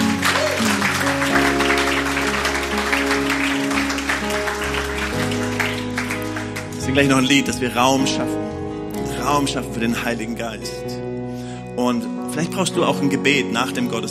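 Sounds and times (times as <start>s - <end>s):
audience applause: 0.0s - 7.5s
speech: 7.0s - 8.6s, 9.3s - 10.9s, 11.8s - 14.0s.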